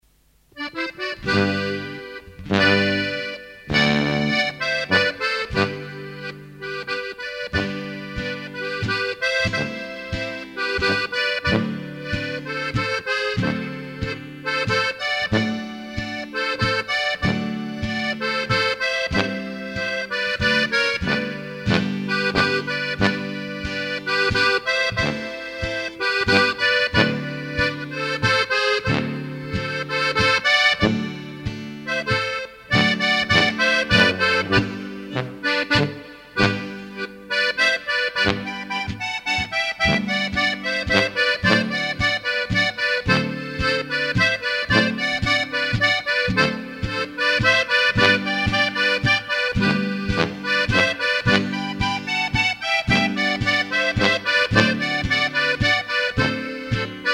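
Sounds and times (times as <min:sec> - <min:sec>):
Plattler folk dance music with waltz: 0:00.1 - 0:57.1.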